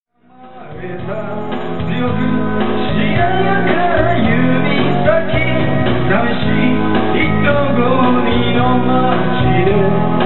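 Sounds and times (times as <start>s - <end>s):
song: 0.4s - 10.2s.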